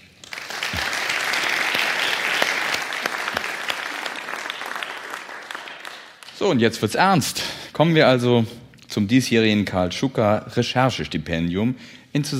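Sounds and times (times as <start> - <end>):
audience applause for the jury: 0.2 - 6.4
speech: 6.4 - 12.3.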